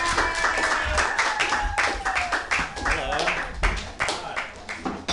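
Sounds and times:
audience clapping: 0.0 - 5.0.

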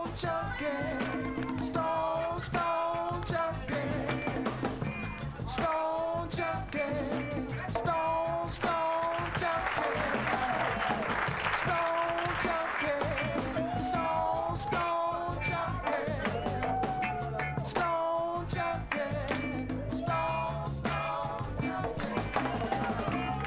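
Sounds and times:
voices shouting and cheering: 0.0 - 23.4
speech: 0.2 - 1.0
loud crowd applause: 8.6 - 14.2, 22.0 - 23.4.

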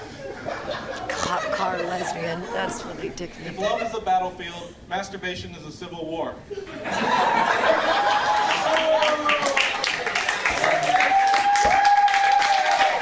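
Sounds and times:
audience laughter: 0.0 - 4.0, 6.6 - 8.8
crowd voices: 1.1 - 3.8
speech: 1.3 - 9.3
audience applause: 7.7 - 13.0.

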